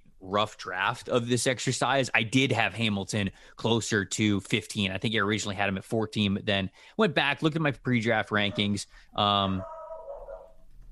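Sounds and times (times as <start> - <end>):
speech: 0.3 - 9.7
dog barking: 9.6 - 10.9.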